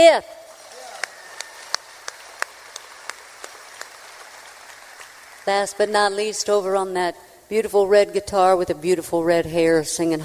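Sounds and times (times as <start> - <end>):
speech: 0.0 - 0.4, 5.5 - 10.2
audience applause: 0.5 - 5.8.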